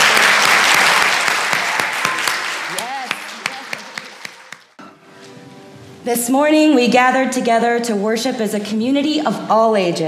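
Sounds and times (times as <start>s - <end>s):
crowd clapping: 0.0s - 4.8s
speech: 6.1s - 10.0s.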